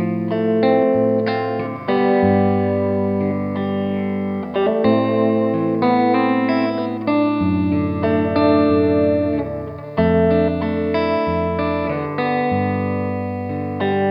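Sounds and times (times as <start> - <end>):
clean electric guitar: 0.0 - 14.0.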